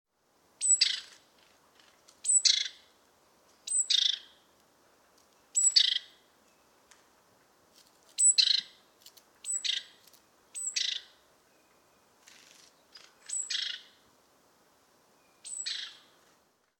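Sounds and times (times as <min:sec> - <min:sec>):
great tit calling: 0:00.6 - 0:01.2, 0:02.2 - 0:02.8, 0:03.7 - 0:04.4, 0:05.6 - 0:06.2, 0:08.2 - 0:08.8, 0:09.4 - 0:11.2, 0:12.9 - 0:14.0, 0:15.4 - 0:16.1.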